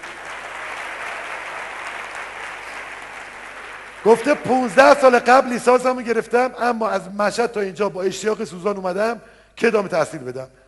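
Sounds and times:
seminar audience applause: 0:00.0 - 0:05.0
speech: 0:04.0 - 0:10.6.

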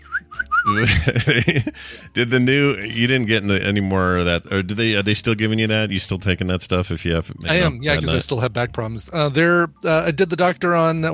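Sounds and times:
person whistling imitation of birds: 0:00.0 - 0:00.8
laughter: 0:00.7 - 0:02.2, 0:07.5 - 0:08.2
speech: 0:00.7 - 0:11.1.

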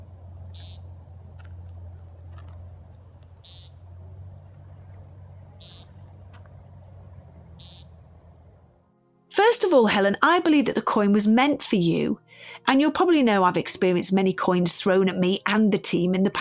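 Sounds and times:
low rumble: 0:00.0 - 0:08.9
woodcock calling: 0:00.5 - 0:01.0, 0:03.3 - 0:03.9, 0:05.6 - 0:06.1, 0:07.6 - 0:08.1
speech: 0:00.6 - 0:00.8, 0:09.6 - 0:16.3.

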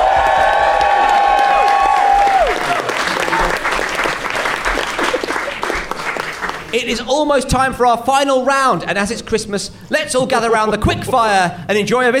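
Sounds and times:
audience applause at a Christmas comedy debate show: 0:00.0 - 0:06.8
speech: 0:06.8 - 0:12.1.

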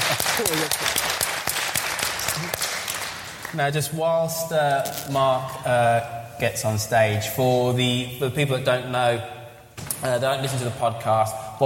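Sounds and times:
audience applause: 0:00.0 - 0:03.6
speech: 0:00.2 - 0:01.2, 0:02.4 - 0:02.6, 0:03.5 - 0:09.4, 0:10.0 - 0:11.4.

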